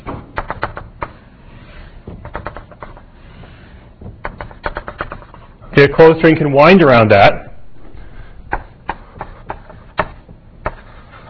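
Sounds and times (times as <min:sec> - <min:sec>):
tapping and scraping as a closed string is drawn on a board: 0:00.0 - 0:05.6, 0:08.5 - 0:11.2
speech: 0:05.8 - 0:07.4.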